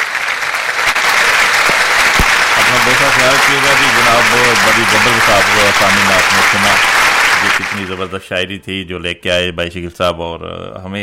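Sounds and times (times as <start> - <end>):
audience applause at a poetry recital of Urdu and Punjabi verse: 0.0 - 8.2
speech: 3.0 - 11.0.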